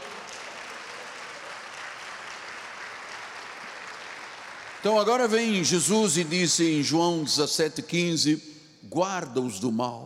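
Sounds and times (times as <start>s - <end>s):
audience applause: 0.0s - 5.6s
speech: 4.8s - 10.0s.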